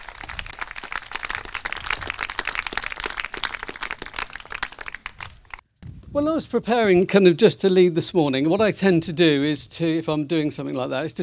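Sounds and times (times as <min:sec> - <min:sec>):
crowd applauding: 0:00.0 - 0:05.6
speech: 0:06.1 - 0:11.2.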